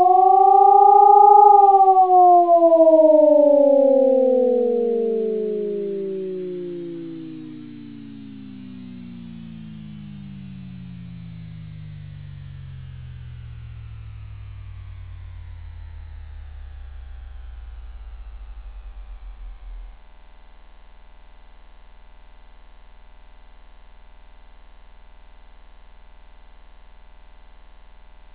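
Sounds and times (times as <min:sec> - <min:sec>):
warning signal: 0:00.0 - 0:09.9.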